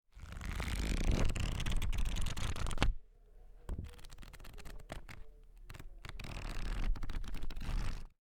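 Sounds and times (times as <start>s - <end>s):
pages of a book flipping: 0.2s - 3.0s, 3.7s - 8.1s.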